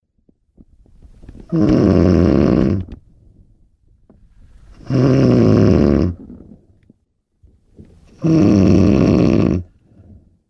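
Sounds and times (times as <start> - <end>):
loud snoring: 1.5 - 2.9, 4.8 - 6.2, 8.2 - 10.2.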